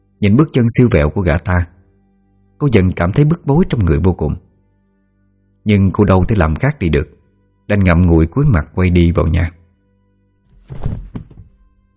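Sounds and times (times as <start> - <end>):
speech: 0.2 - 1.7, 2.6 - 4.4, 5.6 - 9.6, 10.7 - 11.0
body falling onto grassy ground: 10.5 - 11.7
smaller dull knock: 10.6 - 11.7.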